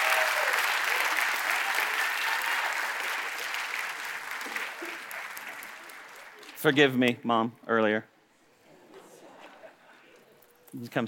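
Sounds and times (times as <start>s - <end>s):
audience applause: 0.0s - 6.9s
speech: 6.6s - 8.1s, 10.8s - 11.0s.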